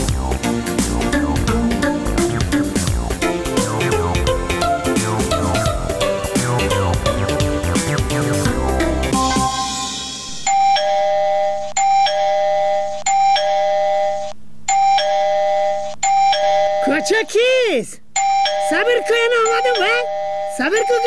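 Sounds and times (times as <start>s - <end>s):
music: 0.0s - 10.8s
electronic doorbell ringing: 9.3s - 17.2s, 18.2s - 21.0s.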